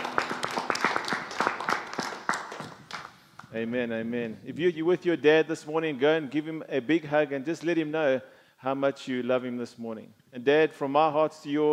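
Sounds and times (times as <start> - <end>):
audience applause: 0.0 - 3.2
speech: 3.6 - 11.7.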